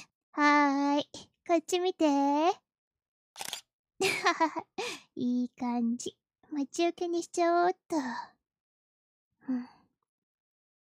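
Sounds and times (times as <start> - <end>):
speech: 1.6 - 2.6, 3.4 - 8.3, 9.5 - 9.8
smartphone camera shutter taking a photo: 3.4 - 3.6.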